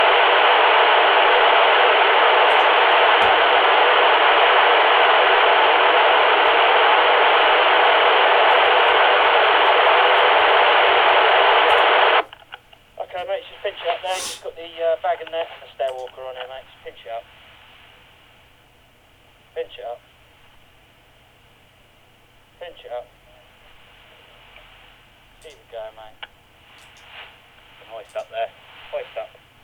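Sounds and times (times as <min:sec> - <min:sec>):
walkie-talkie 455 MHz transmission via external connection: 0:00.0 - 0:17.2, 0:27.8 - 0:29.4.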